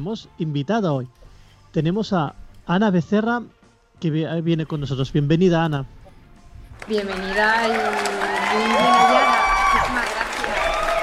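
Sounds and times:
speech: 0.0 - 6.0, 6.8 - 10.0
applause: 6.8 - 11.0
cheering: 7.2 - 11.0.

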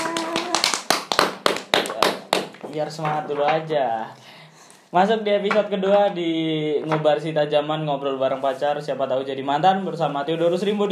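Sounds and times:
hand clapping: 0.0 - 3.7
speech: 2.8 - 4.3, 4.9 - 10.9.

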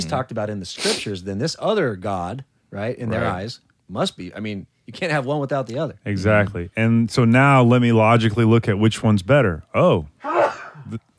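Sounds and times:
speech: 0.0 - 11.1
sneeze: 10.2 - 10.9.

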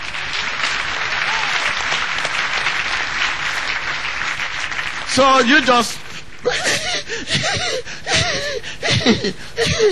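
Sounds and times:
audience clapping: 0.0 - 6.5
speech: 5.2 - 9.9.

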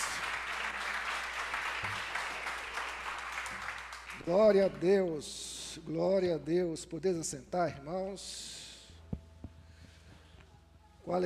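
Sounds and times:
audience applause: 0.0 - 4.8
speech: 4.2 - 8.6, 11.1 - 11.2.

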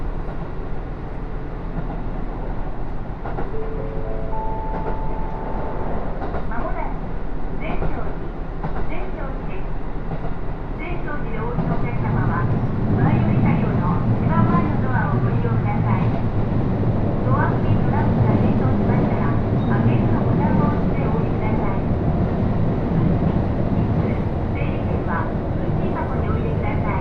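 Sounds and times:
Takayama Main Line local train running between Jōro and Shimoaburai: 0.0 - 27.0
voices: 6.5 - 8.2, 8.8 - 9.7, 10.8 - 16.2, 17.2 - 22.0, 23.2 - 27.0.

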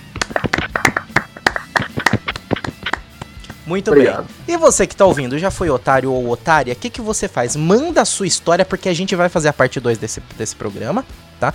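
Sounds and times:
people clapping: 0.0 - 4.2
speech: 3.7 - 11.5.

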